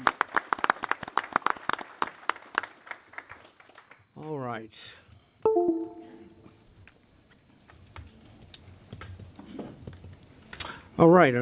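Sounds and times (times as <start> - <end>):
round of applause: 0.0 - 4.0
speech: 11.0 - 11.3.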